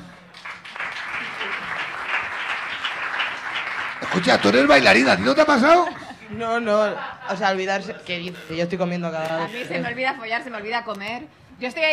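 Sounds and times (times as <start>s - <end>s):
audience applause: 0.3s - 5.7s
laughter: 4.0s - 8.6s
speech: 4.2s - 11.9s.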